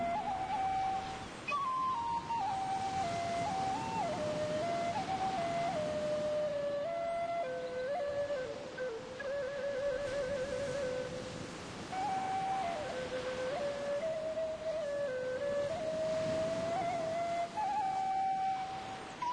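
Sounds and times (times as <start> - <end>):
Thai bamboo flute playing: 0.0 - 19.3.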